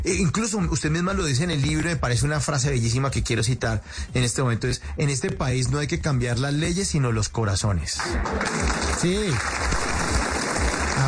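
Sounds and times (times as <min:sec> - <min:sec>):
speech: 0:00.0 - 0:09.8
applause: 0:08.0 - 0:11.0.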